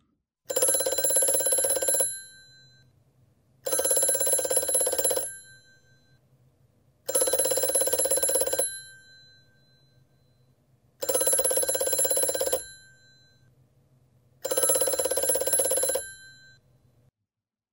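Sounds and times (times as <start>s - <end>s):
telephone ringing: 0.5s - 2.9s, 3.6s - 6.2s, 7.1s - 13.5s, 14.4s - 16.7s.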